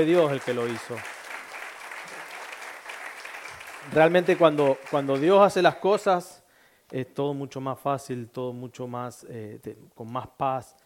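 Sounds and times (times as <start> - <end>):
speech: 0.0 - 1.2, 3.9 - 10.8
loud applause: 0.0 - 5.7.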